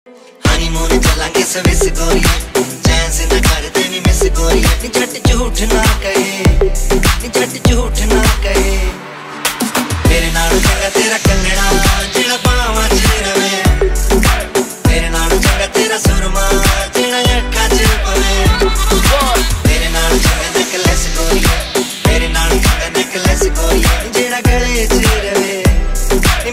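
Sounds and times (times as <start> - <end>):
Desi Punjabi ringtone music: 0.4 - 26.5.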